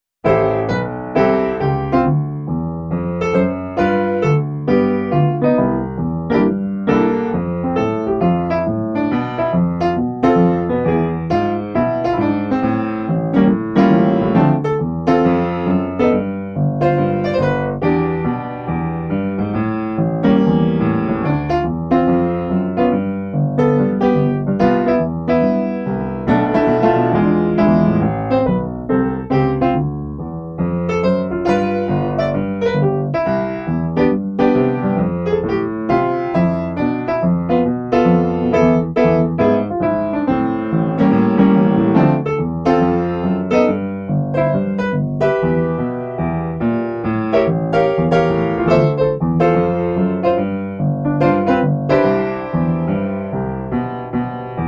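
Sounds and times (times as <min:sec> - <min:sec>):
jazz improvisation: 0:00.0 - 0:54.6.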